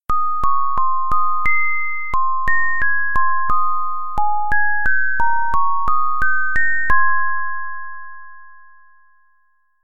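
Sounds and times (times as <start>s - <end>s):
sine tone: 0.1s - 9.8s.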